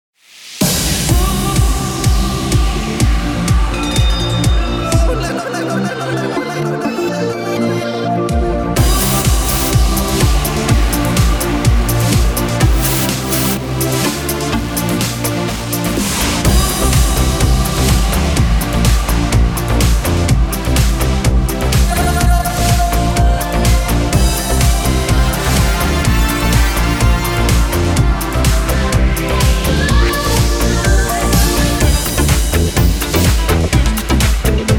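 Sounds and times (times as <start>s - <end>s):
pop theme music: 0.4s - 34.7s.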